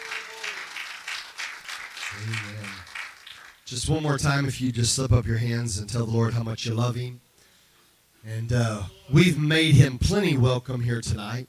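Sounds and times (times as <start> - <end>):
audience hand clapping: 0.0 - 3.7
speech: 2.1 - 2.9, 3.7 - 7.3, 8.2 - 11.4.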